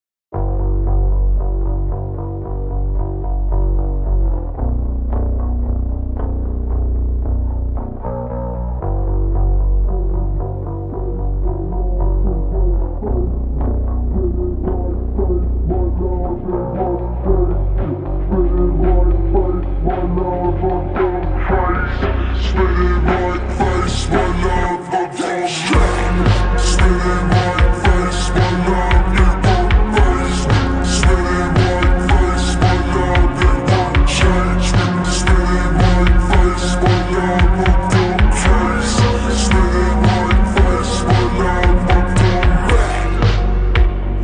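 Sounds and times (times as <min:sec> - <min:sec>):
super slowed music with reverb: 0:00.4 - 0:44.2.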